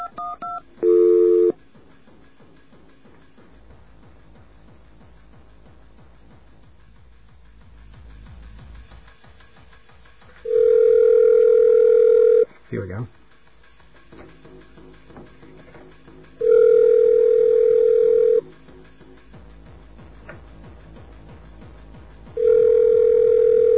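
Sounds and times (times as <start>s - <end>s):
touch-tone beep and dual-tone dialing: 0.0s - 1.6s, 10.5s - 12.4s, 16.4s - 18.4s, 22.4s - 23.7s.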